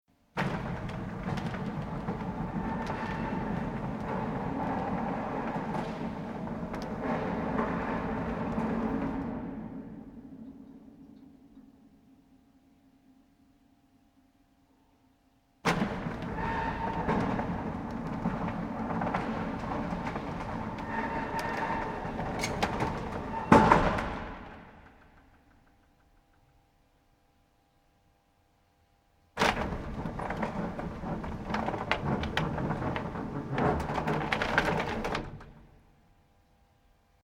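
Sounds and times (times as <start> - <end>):
large industrial mechanical electric door closing: 0.4 - 11.2, 15.6 - 26.1, 29.4 - 35.9.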